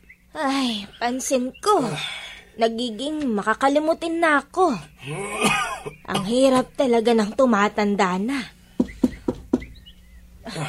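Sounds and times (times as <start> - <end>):
faint bird chirps: 0.0 - 10.6
speech: 0.4 - 8.6
knocking on a door: 8.8 - 9.8.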